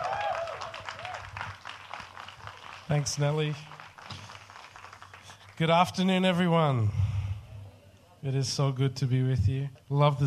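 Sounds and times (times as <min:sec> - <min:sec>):
church congregation applauding to welcome the pastors: 0:00.0 - 0:06.0
speech: 0:02.9 - 0:03.8, 0:05.6 - 0:07.0, 0:08.2 - 0:10.2.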